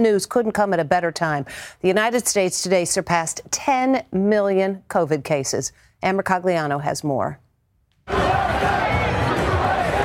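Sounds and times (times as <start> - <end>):
speech: 0.0 - 7.4
large crowd cheering and shouting in celebration: 8.1 - 10.0.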